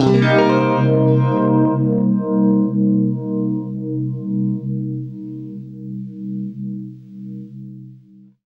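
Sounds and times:
guitar Cm7 chord through univibe: 0:00.0 - 0:08.2.

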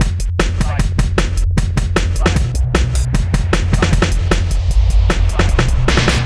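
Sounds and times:
hardcore breakbeat in F minor: 0:00.0 - 0:06.2.

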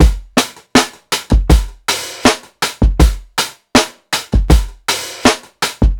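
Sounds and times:
piccolo drum sixteenth-note beat loop: 0:00.0 - 0:05.9.

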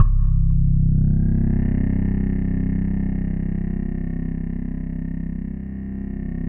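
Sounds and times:
phased synthesizer bass: 0:00.0 - 0:06.4.

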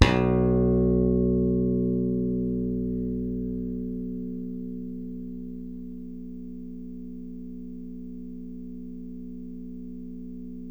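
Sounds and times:
slap electric bass: 0:00.0 - 0:08.0.

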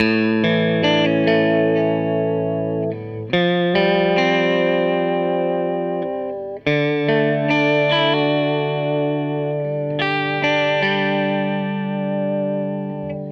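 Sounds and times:
guitar loop: 0:00.0 - 0:13.3.

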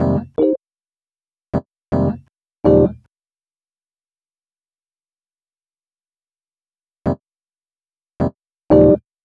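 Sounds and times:
Rhodes cinematic funk music: 0:00.0 - 0:00.6, 0:01.9 - 0:03.0, 0:08.7 - 0:09.0.

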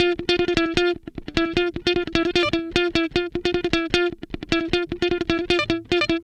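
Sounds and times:
guitar licks: 0:00.0 - 0:06.2.

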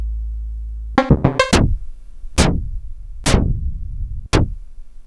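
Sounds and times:
Rhodes Polaris synthesizer: 0:01.0 - 0:05.0.

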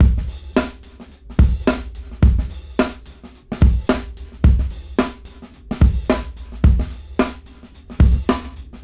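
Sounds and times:
brown noise: 0:00.0 - 0:08.8.

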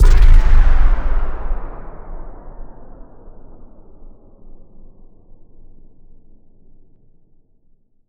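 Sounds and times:
impact: 0:00.0 - 0:03.6.

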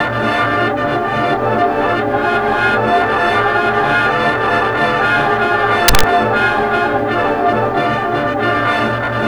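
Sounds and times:
surreal 1940s swing music: 0:00.0 - 0:09.2.

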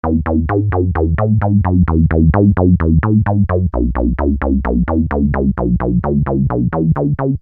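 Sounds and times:
techno synth bass loop in E minor: 0:00.0 - 0:07.3.

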